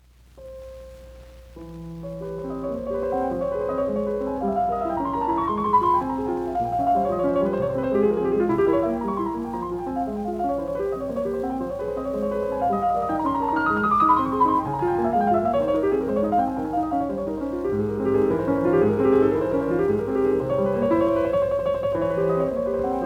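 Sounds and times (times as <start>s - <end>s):
presto etude in F minor: 2.1s - 23.0s.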